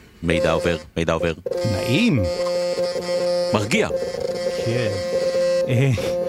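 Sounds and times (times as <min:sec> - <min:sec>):
speech: 0:00.2 - 0:06.2
computer beeps for each data transmission: 0:01.4 - 0:06.2.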